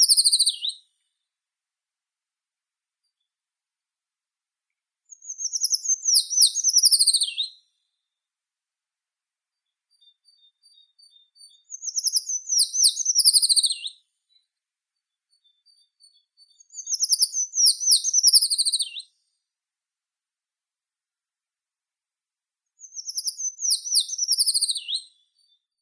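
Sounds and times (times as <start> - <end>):
Eurasian treecreeper Certhia familiaris calling: 0.0 - 0.8, 5.3 - 7.5, 11.7 - 13.9, 16.8 - 19.0, 22.9 - 25.0.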